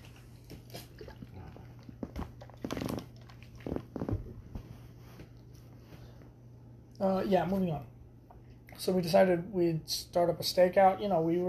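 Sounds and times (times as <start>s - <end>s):
person drinking water: 0.0s - 4.4s
speech: 7.0s - 7.9s, 8.8s - 11.4s.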